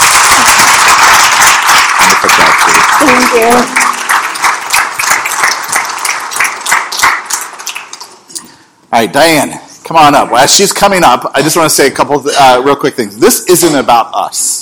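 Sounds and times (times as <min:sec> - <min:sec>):
audience applause: 0:00.0 - 0:08.2
speech: 0:03.1 - 0:03.8, 0:08.9 - 0:14.5.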